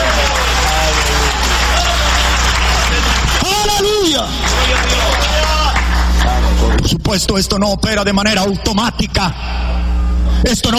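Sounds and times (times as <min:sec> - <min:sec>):
audience applause: 0:00.0 - 0:06.7
speech: 0:07.1 - 0:09.7, 0:10.4 - 0:10.7.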